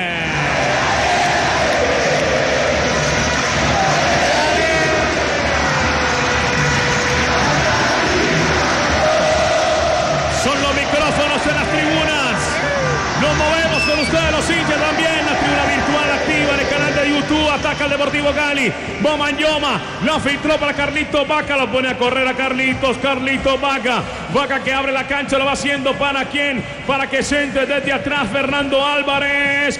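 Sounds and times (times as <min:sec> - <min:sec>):
football fans roaring in a stadium: 0:00.0 - 0:18.9
speech: 0:18.6 - 0:29.7.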